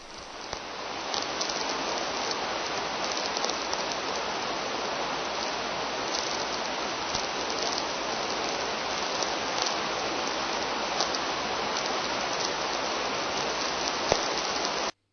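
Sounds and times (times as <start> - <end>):
radio interference from a storm on Jupiter: 0.0 - 15.0.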